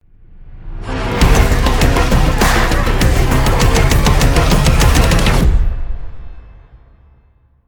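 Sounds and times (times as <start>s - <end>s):
epic dubstep tech intro logo music: 0.7s - 5.8s.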